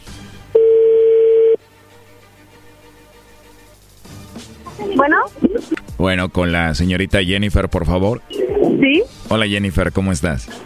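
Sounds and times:
telephone call ringing tone: 0:00.6 - 0:01.6
speech: 0:05.0 - 0:10.6.

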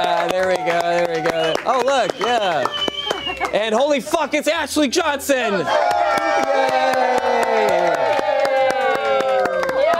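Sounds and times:
studio audience whooping and shouting: 0:00.0 - 0:02.1, 0:05.4 - 0:09.9
studio audience clapping: 0:00.0 - 0:04.0, 0:05.7 - 0:09.9
speech: 0:00.0 - 0:08.1.

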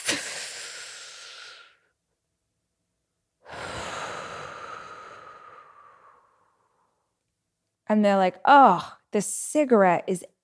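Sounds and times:
deep breath taken outside in the fresh air: 0:00.0 - 0:01.9, 0:03.4 - 0:07.0
speech: 0:07.9 - 0:10.3.

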